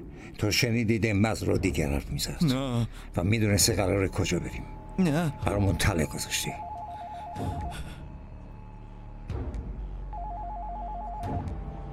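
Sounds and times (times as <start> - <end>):
speech: 0.3 - 6.7, 7.4 - 8.0
telephone ringing in warbling electronic trills: 6.3 - 7.7, 10.1 - 11.4.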